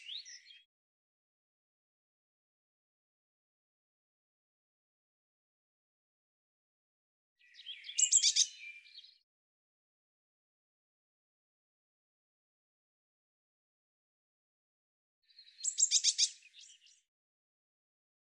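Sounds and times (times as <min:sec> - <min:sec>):
Eurasian blue tit calls: 0:07.5 - 0:08.8, 0:15.6 - 0:16.8.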